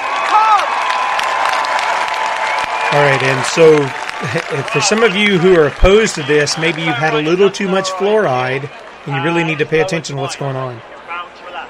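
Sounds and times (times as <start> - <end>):
crowd applause at outdoor rally: 0.0 - 11.2
laughter: 2.9 - 10.7
speech: 3.0 - 11.0.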